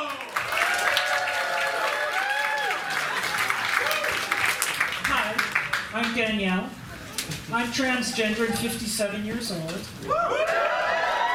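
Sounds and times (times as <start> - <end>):
audience applause for comedian: 0.0 - 5.9, 10.2 - 11.3
speech: 6.0 - 10.6.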